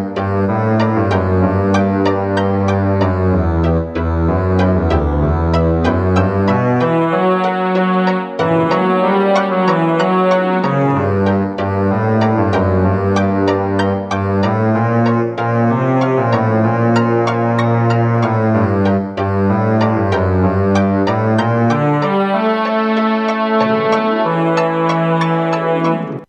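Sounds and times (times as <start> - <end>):
Hammond GM-1000 organ: 0.0 - 26.2.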